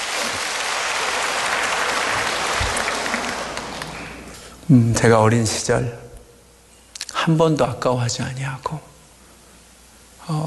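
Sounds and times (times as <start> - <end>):
audience applause: 0.0 - 4.5
speech: 4.7 - 6.0, 7.2 - 8.9, 10.3 - 10.4.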